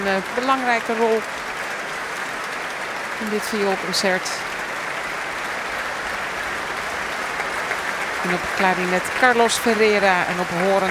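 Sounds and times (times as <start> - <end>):
audience applauding in a standing ovation: 0.0 - 10.9
speech: 0.1 - 1.4, 3.2 - 4.5, 8.2 - 10.9.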